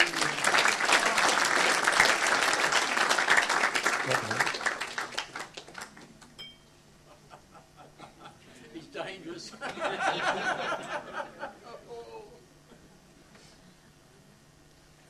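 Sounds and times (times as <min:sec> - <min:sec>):
laughter: 0:00.0 - 0:01.7, 0:07.1 - 0:08.8, 0:09.5 - 0:12.9
audience clapping: 0:00.0 - 0:06.3.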